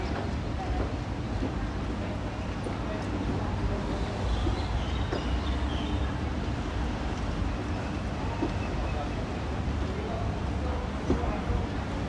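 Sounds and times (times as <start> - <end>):
faint voices: 0.0 - 12.0
traffic rumble at Tel Aviv University in Ramat Aviv: 0.0 - 12.0.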